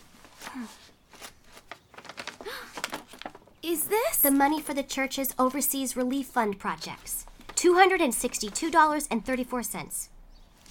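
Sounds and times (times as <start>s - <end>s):
envelope being opened with papery rustles and tearing: 0.2s - 3.7s
speech: 0.6s - 0.9s, 3.6s - 10.1s.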